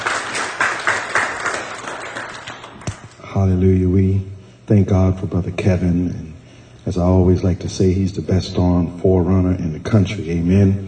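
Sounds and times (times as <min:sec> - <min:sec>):
audience clapping hands in praise: 0:00.0 - 0:03.0
speech: 0:03.4 - 0:10.8.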